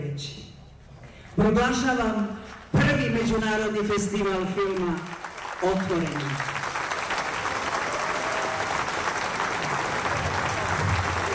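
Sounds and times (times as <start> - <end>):
speech: 1.4 - 2.4, 3.0 - 6.6
thunderous applause from a packed open-air summer stage at a film festival opening: 4.9 - 11.3.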